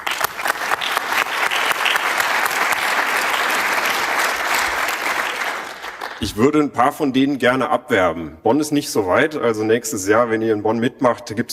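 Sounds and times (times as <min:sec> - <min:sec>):
audience applause for conference helpers: 0:00.0 - 0:06.4
speech: 0:06.2 - 0:11.5.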